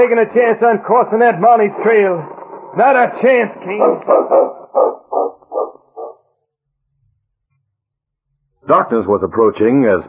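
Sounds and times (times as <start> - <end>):
speech: 0.0 - 5.3, 8.7 - 10.0
dog barking: 3.8 - 6.2.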